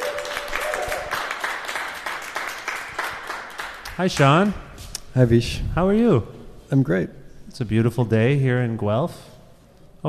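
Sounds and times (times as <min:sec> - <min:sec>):
audience round of applause: 0:00.0 - 0:04.4
speech: 0:04.0 - 0:04.6, 0:05.2 - 0:09.3.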